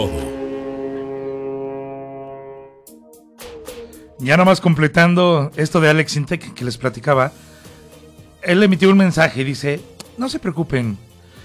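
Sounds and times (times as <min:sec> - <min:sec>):
speech: 0:00.0 - 0:00.2, 0:04.2 - 0:07.5, 0:08.4 - 0:11.1
ship's horn sound effect blast: 0:00.0 - 0:04.3.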